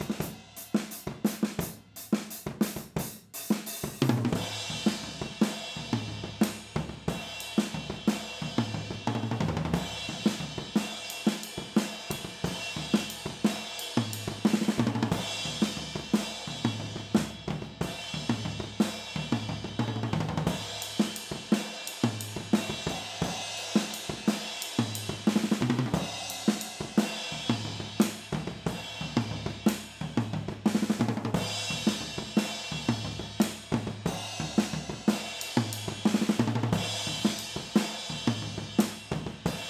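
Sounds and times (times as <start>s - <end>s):
drums recorded overhead in stereo: 0.0s - 39.6s.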